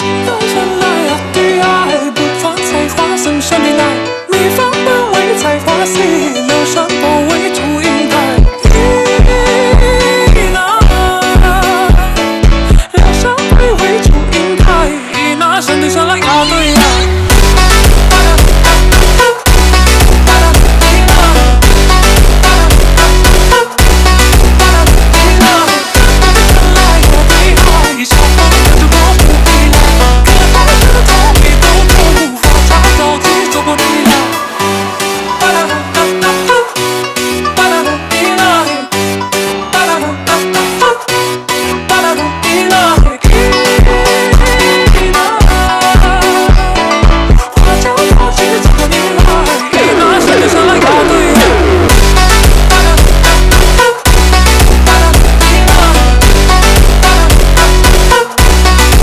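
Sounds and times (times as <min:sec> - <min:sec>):
super slowed phonk music: 0:00.0 - 0:59.0.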